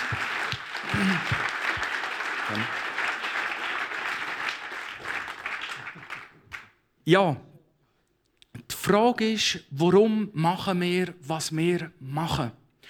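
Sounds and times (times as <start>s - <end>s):
low cheers or calls: 0.0s - 4.2s
crowd applauding: 0.0s - 6.8s
speech: 7.1s - 7.5s, 8.9s - 12.8s.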